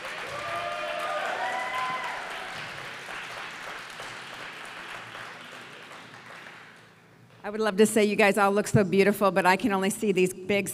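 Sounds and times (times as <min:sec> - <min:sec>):
audience applause: 0:00.0 - 0:06.9
speech: 0:07.4 - 0:10.7.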